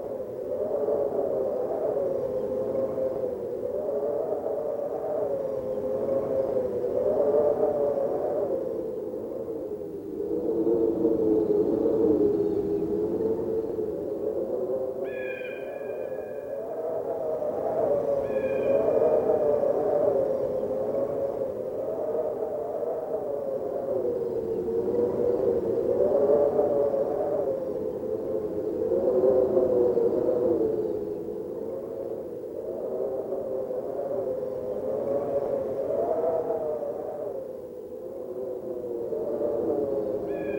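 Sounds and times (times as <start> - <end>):
wind: 0.0 - 40.5.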